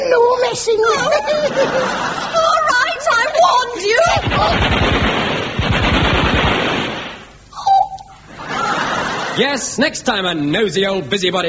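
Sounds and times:
speech: 0.5 - 2.3, 9.4 - 11.4
laughter: 0.6 - 3.8, 8.3 - 9.8
Westminster submachine gun firing a burst: 4.0 - 7.4.

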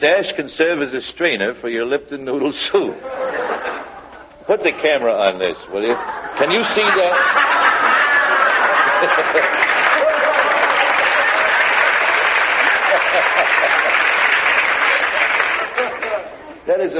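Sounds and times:
speech: 0.0 - 3.8, 4.5 - 7.6, 9.0 - 9.7, 13.2 - 13.9, 16.8 - 16.9
laughter: 3.0 - 16.6
audience applause: 6.4 - 16.4.

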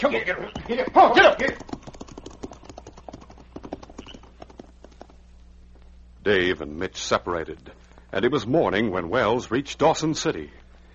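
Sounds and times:
speech: 0.0 - 1.7, 6.3 - 10.6
horses' hooves clip-clopping at a trot: 0.0 - 5.3.

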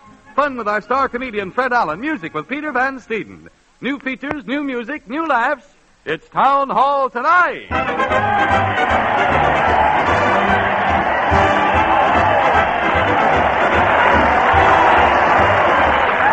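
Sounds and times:
speech: 0.4 - 9.2
crowd cheering: 7.7 - 16.3.

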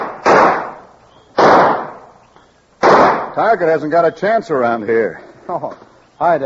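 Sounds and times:
pistol gunshots at a police pistol range: 0.0 - 2.2, 2.8 - 3.6
speech: 3.4 - 6.4.

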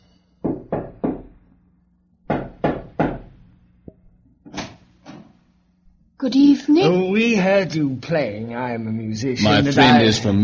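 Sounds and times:
knocking on a door: 0.4 - 1.4, 2.2 - 3.5
speech: 6.2 - 10.4.

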